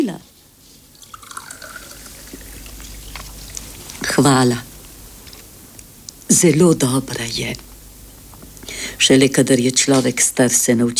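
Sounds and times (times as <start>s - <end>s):
speech: 0.0s - 0.3s, 4.2s - 4.7s, 6.3s - 7.7s, 9.0s - 10.9s
soda pouring into a glass: 0.9s - 3.1s
small drips: 1.0s - 3.7s.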